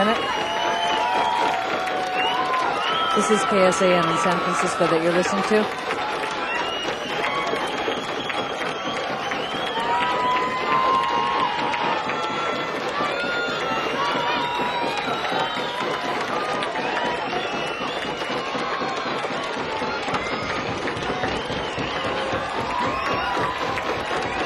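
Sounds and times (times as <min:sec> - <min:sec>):
crowd pounding feet: 0:00.0 - 0:24.4
speech: 0:03.2 - 0:05.8.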